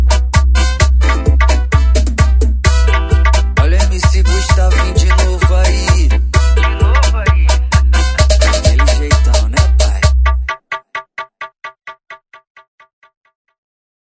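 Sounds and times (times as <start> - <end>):
car sound system on a trailer in Douradina Parana: 0.0 - 11.2.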